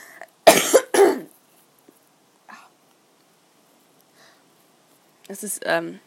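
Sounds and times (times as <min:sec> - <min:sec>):
person coughing to clear the throat: 0:00.5 - 0:01.3
speech: 0:05.3 - 0:06.0.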